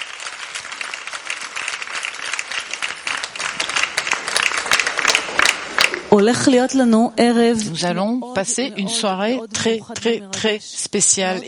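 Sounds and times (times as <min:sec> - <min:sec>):
audience applause: 0:00.0 - 0:06.1
speech: 0:06.1 - 0:11.4.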